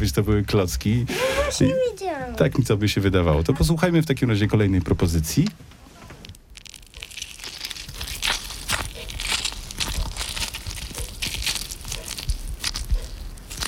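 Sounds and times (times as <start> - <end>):
speech: 0.0 - 5.8
orange being squeezed: 6.3 - 13.6.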